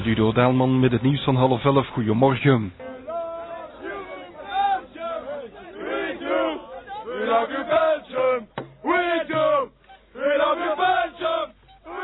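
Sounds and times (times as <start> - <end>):
speech: 0.2 - 2.8
football supporters cheering and chanting after a win: 2.8 - 12.0.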